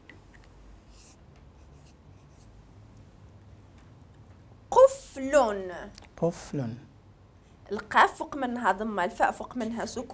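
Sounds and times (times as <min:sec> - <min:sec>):
scratching of a word being written by hand during a lesson: 0:00.8 - 0:02.6
speech: 0:05.2 - 0:06.9, 0:07.7 - 0:10.1.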